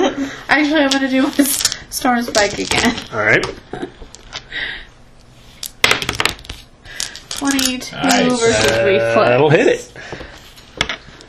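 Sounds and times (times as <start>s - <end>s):
speech: 0.3s - 4.8s, 7.4s - 10.2s
dice rolling on a hard tabletop: 0.8s - 3.2s, 5.6s - 7.9s, 10.8s - 11.0s.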